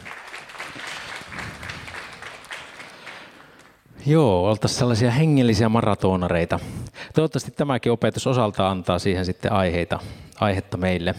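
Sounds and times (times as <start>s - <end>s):
audience applause: 0.0s - 3.8s
speech: 4.0s - 11.1s.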